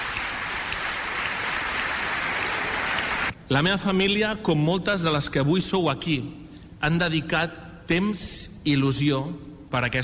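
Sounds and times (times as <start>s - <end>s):
crowd applauding: 0.0s - 3.3s
speech: 3.5s - 10.0s.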